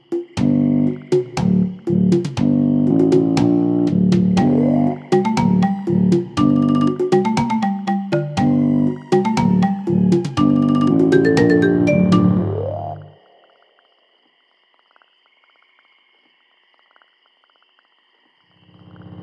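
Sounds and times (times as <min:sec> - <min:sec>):
swamp music: 0:00.0 - 0:13.2.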